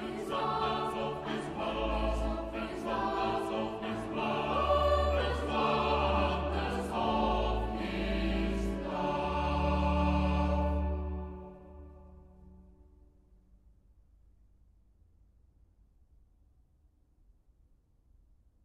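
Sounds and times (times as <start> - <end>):
closing hymn: 0.0 - 12.2.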